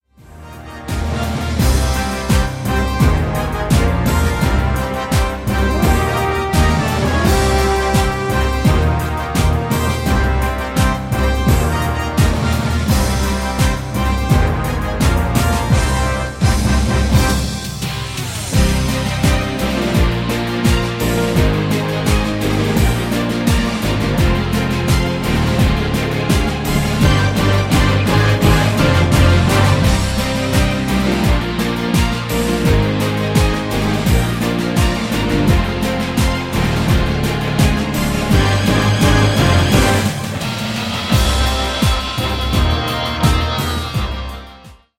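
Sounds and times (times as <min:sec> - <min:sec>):
backing track: 0:00.0 - 0:44.9.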